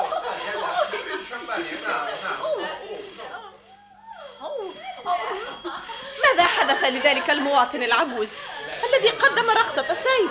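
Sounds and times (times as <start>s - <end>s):
laughter: 0.0s - 10.2s
telephone ringing: 0.0s - 10.2s
speech: 6.9s - 10.2s.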